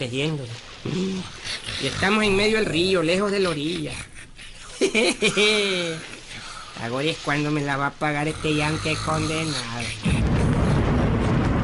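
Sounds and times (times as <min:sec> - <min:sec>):
speech: 0:00.0 - 0:04.1, 0:04.8 - 0:06.2, 0:06.8 - 0:10.1
laughter: 0:04.6 - 0:06.1
thunder of an arriving storm: 0:10.0 - 0:11.6.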